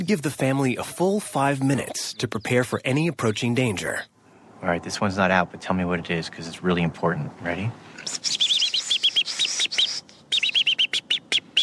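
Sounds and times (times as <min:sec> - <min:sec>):
speech: 0:00.1 - 0:08.5
American robin alarm call: 0:00.8 - 0:04.2, 0:08.2 - 0:11.6.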